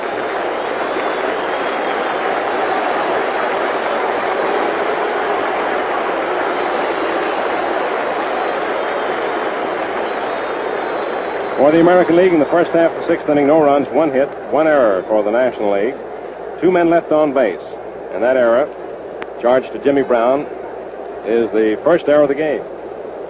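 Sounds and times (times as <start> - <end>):
stadium crowd applauding the pitcher: 0.0 - 17.6
speech: 11.6 - 18.8, 19.4 - 20.6, 21.2 - 22.8.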